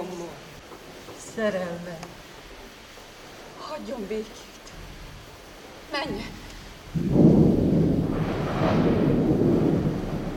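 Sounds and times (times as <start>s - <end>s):
rain falling: 0.0s - 10.3s
speech: 1.4s - 2.2s, 3.8s - 4.5s, 5.9s - 7.2s
rolling thunder: 6.0s - 10.3s.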